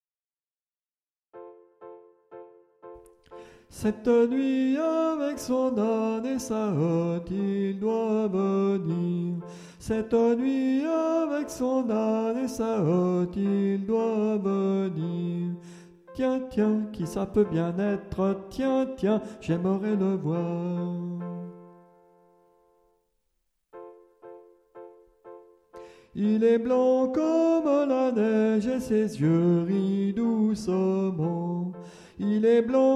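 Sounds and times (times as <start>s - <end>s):
soprano singing: 3.4s - 22.3s, 26.1s - 32.9s.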